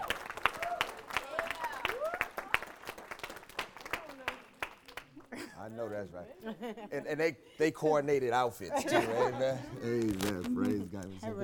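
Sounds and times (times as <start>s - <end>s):
audience clapping: 0.0s - 5.4s
speech: 5.8s - 11.4s.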